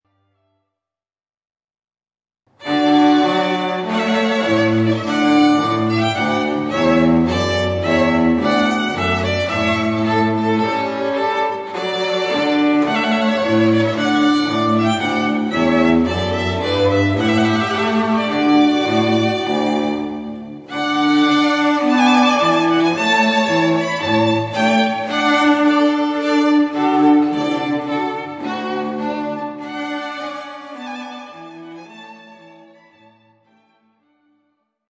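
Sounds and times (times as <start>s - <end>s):
trumpet piece: 2.6s - 31.0s.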